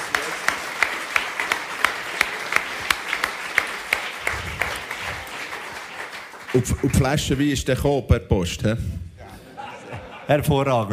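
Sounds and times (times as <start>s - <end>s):
audience applause: 0.0s - 7.6s
speech: 6.6s - 9.0s, 10.3s - 10.9s
laughter: 9.2s - 10.9s.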